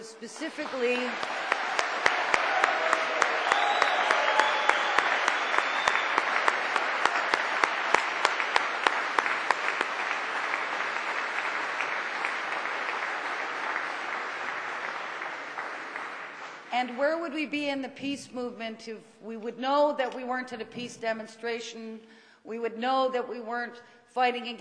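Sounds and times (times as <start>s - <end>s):
speech: 0.2s - 1.8s, 16.8s - 24.6s
audience applause at an evening peace-movement event in Vancouver: 0.5s - 16.7s.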